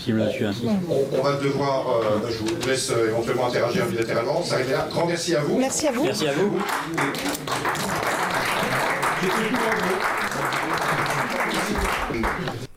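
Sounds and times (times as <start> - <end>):
speech: 0.0 - 7.9, 9.2 - 10.2
audience applause: 6.2 - 12.7.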